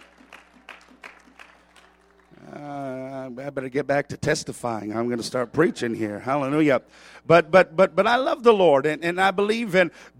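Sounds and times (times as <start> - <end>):
audience clapping hands: 0.0 - 3.4
speech: 3.4 - 10.1.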